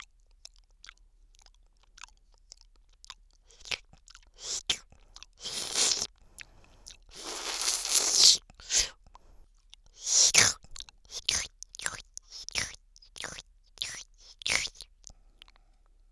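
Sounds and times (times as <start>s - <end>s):
person licking ice cream in the left ear: 3.4s - 9.4s, 10.0s - 14.9s.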